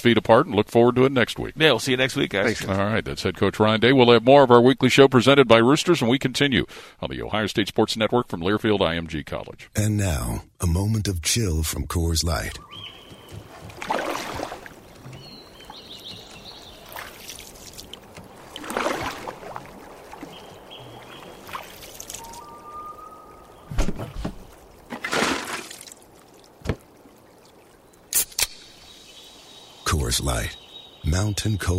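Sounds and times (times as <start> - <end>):
speech: 0.0 - 13.0, 30.2 - 31.7
water lapping around a drifting canoe: 12.7 - 28.1
hollow knocks against the canoe hull: 13.0 - 16.3, 26.6 - 26.9.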